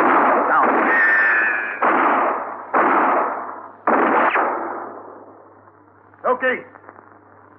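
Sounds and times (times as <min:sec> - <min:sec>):
gunshots in a 1959 western radio drama: 0:00.0 - 0:05.4.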